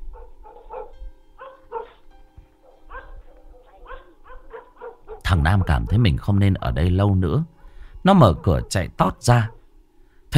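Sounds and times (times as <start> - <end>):
dog barking furiously: 0.2 - 2.0, 2.8 - 6.2, 8.2 - 9.6
speech: 5.3 - 9.6.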